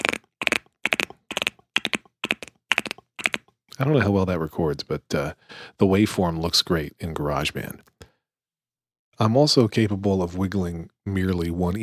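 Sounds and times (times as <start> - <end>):
tongue clicks imitating a horse galloping: 0.0 - 3.6
speech: 3.8 - 8.0, 9.2 - 11.8.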